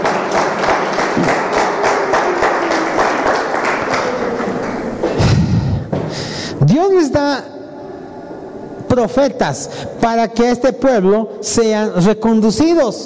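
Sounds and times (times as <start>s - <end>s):
audience applause: 0.0s - 5.5s
speech: 6.8s - 7.5s, 9.0s - 13.0s.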